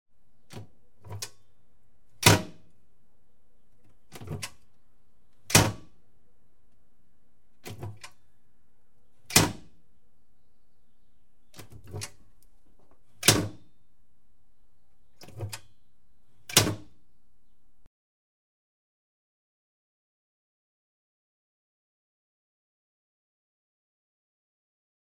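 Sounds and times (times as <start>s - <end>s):
doors of a glass cabinet: 0.5s - 1.4s, 4.0s - 4.7s, 5.4s - 6.0s, 7.6s - 8.2s, 9.2s - 9.8s, 11.5s - 12.3s, 13.1s - 13.7s, 15.2s - 15.8s, 16.4s - 17.0s.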